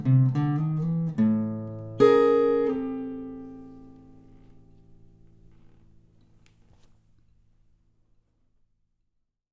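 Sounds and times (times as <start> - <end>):
elementary blues music: 0.0 - 4.9.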